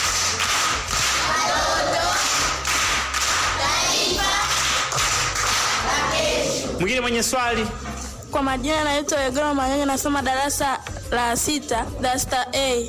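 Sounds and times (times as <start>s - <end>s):
primary schoolchildren clapping for a classmate: 0.0s - 6.2s
speech: 6.9s - 12.8s.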